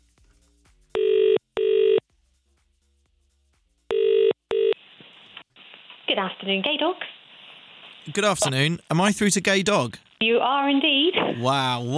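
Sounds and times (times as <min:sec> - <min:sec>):
telephone call ringing tone: 0:01.0 - 0:02.0, 0:03.9 - 0:04.8
speech: 0:06.2 - 0:07.2, 0:08.0 - 0:11.9.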